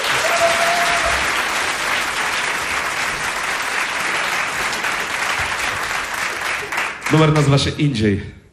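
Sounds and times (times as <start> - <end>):
audience applause: 0.0 - 7.5
speech: 7.1 - 8.4.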